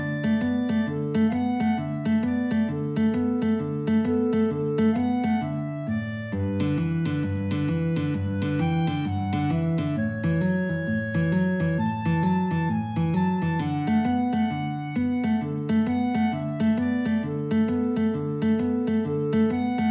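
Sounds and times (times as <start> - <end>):
guitar and clarinet duet playing boogie: 0.0 - 19.9.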